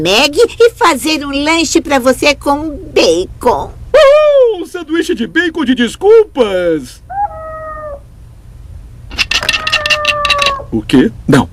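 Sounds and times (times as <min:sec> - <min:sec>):
speech: 0:00.0 - 0:03.8, 0:04.8 - 0:07.0, 0:10.7 - 0:11.5
cat meowing inside a wall: 0:07.1 - 0:08.1, 0:09.3 - 0:10.8
sharp clattering bursts: 0:09.1 - 0:10.6.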